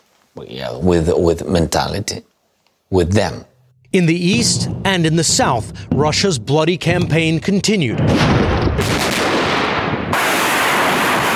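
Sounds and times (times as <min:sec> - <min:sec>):
speech: 0:00.4 - 0:02.3, 0:02.9 - 0:09.0
artillery and missile fire: 0:07.9 - 0:11.3.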